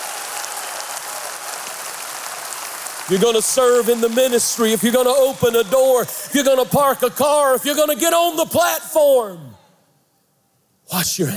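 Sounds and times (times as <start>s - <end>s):
many people clapping hands: 0.0s - 7.3s
speech: 3.1s - 9.6s, 10.9s - 11.3s.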